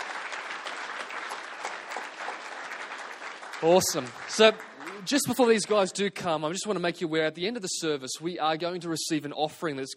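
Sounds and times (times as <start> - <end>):
audience applause: 0.0 - 6.2
speech: 3.6 - 9.9.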